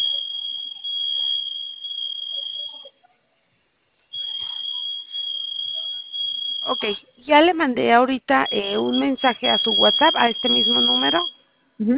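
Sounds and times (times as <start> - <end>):
security alarm shrill high-pitched tone: 0.0 - 3.0, 4.1 - 7.2, 8.4 - 11.7
speech: 6.8 - 11.9.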